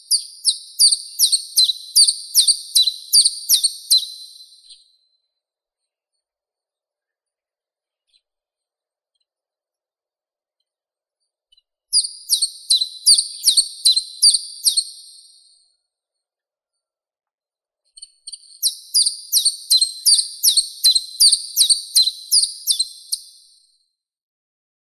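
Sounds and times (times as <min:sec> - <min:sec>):
chiffchaff Phylloscopus collybita singing: 0:00.1 - 0:04.4, 0:12.0 - 0:15.0, 0:18.6 - 0:23.4.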